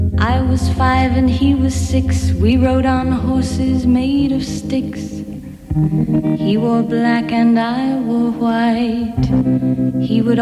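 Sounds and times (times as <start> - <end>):
pop song intro played: 0.2 - 5.4, 6.1 - 10.4
speech: 1.4 - 5.1, 5.8 - 10.4.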